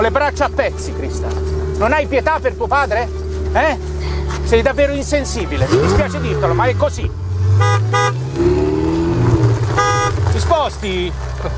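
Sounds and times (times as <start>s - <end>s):
speech: 0.0s - 8.6s, 10.4s - 11.5s
Ferrari car engine droning: 0.0s - 11.5s
Ferrari car horn toots: 5.4s - 10.8s.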